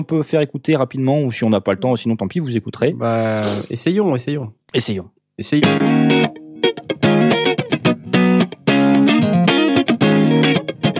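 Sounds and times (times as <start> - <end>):
speech: 0.0 - 6.9
electric guitar through MV50 amplifier playing distorted chords: 5.6 - 10.9.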